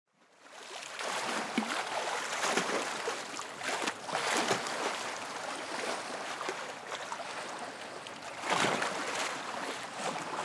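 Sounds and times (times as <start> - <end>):
waves: 0.2 - 10.4.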